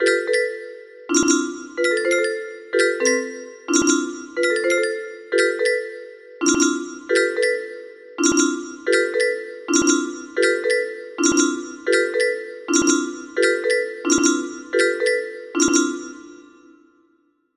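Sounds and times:
music box melody: 0.0 - 16.8.

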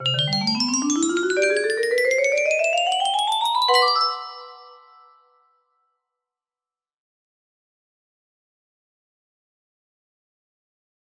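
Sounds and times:
music box melody: 0.0 - 5.2.

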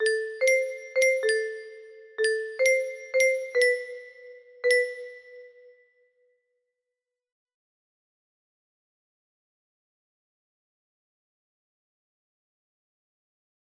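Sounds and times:
melody: 0.0 - 5.7.

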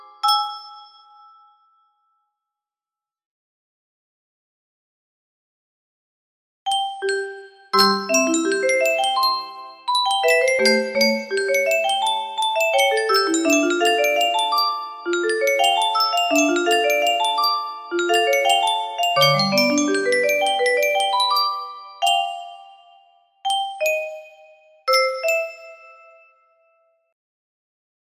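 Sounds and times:
music box duet: 0.0 - 1.6, 6.7 - 26.4.

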